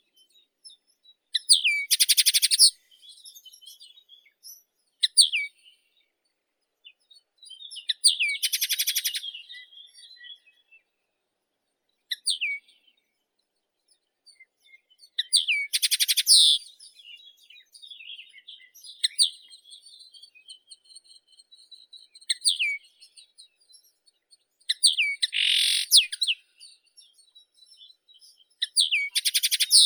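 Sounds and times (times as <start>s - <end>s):
common linnet Acanthis cannabina singing: 1.4s - 5.5s, 7.5s - 10.6s, 15.0s - 23.3s, 24.7s - 29.8s.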